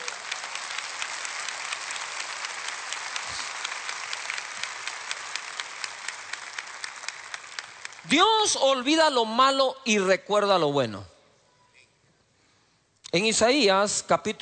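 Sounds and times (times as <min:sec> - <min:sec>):
applause: 0:00.0 - 0:08.8
speech: 0:08.1 - 0:11.1, 0:13.1 - 0:14.4.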